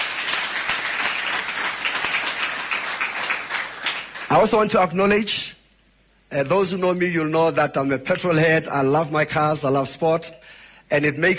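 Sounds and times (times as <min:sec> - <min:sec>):
audience applause: 0:00.0 - 0:04.6
speech: 0:04.3 - 0:05.6, 0:06.3 - 0:11.3.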